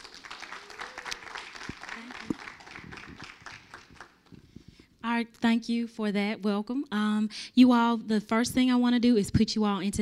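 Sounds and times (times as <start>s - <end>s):
audience applauding to welcome a speaker: 0.0s - 4.4s
speech: 5.1s - 9.9s.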